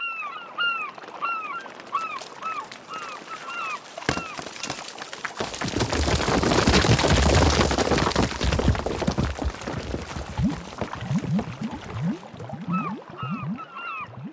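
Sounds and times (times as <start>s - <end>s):
seabird calls: 0.0s - 4.8s, 12.6s - 14.3s
cliff rock collapsing into the sea: 3.6s - 12.4s.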